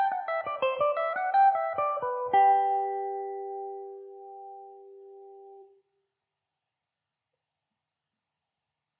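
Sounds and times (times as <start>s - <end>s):
Irish mandolin mandobird playing G major: 0.0s - 5.7s.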